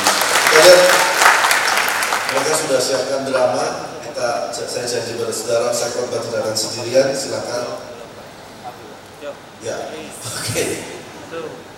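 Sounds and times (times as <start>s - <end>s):
audience applause: 0.0s - 4.1s
speech: 0.6s - 1.0s, 2.7s - 7.9s, 9.2s - 11.7s.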